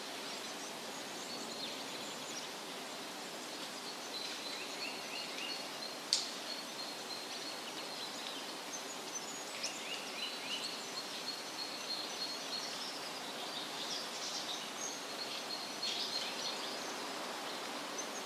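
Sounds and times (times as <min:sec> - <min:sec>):
small birds chirping and twittering: 0:00.0 - 0:18.2
steady outdoor noise hiss in woodland: 0:00.0 - 0:18.2.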